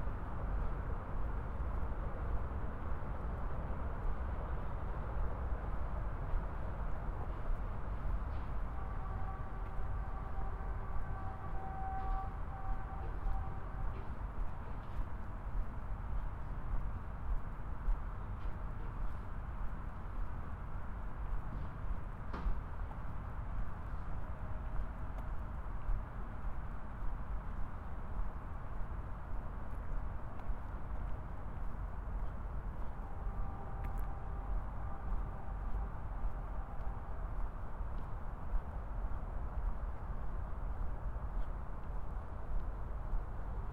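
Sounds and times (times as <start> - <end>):
traffic rumble on 111th Street in Corona: 0.0 - 43.7.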